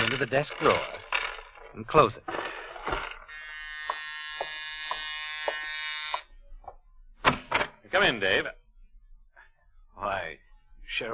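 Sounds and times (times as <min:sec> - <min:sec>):
speech: 0:00.2 - 0:01.0, 0:01.8 - 0:03.4, 0:07.9 - 0:08.6, 0:10.0 - 0:11.1
buzzer-style doorbell ringing: 0:03.3 - 0:06.3.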